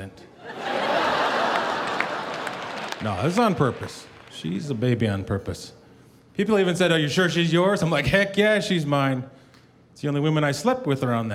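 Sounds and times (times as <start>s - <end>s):
speech: 0.0s - 0.3s, 3.0s - 5.8s, 6.4s - 9.4s, 10.0s - 11.3s
audience chuckling: 0.4s - 3.3s
audience clapping: 0.6s - 5.0s.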